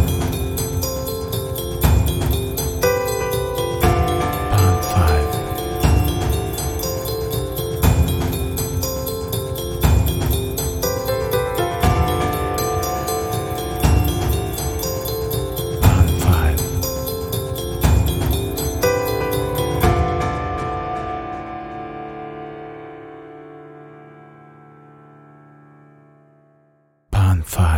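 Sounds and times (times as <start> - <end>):
Christmas countdown clock: 0.0 - 21.6.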